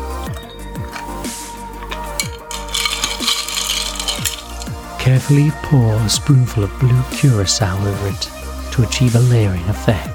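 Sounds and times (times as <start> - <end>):
ice cubes poured into a highball glass: 1.9 - 4.8
speech: 5.1 - 10.1.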